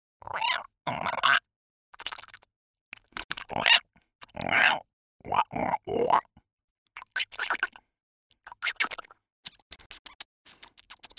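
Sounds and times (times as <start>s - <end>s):
alien creature sounds: 0.2s - 1.5s, 3.4s - 6.3s.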